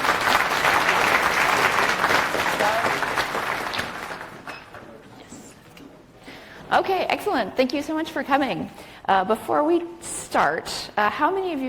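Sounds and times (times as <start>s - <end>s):
audience applause: 0.0s - 4.6s
speech: 6.8s - 11.6s.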